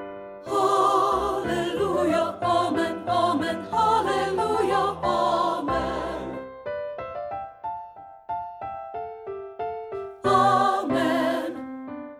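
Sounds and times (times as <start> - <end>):
alto voice singing: 0.5 - 6.5, 10.1 - 11.8.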